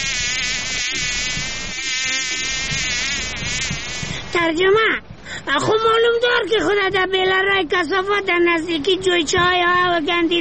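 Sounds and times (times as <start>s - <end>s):
fly buzzing: 0.0s - 4.4s
speech: 4.4s - 10.3s.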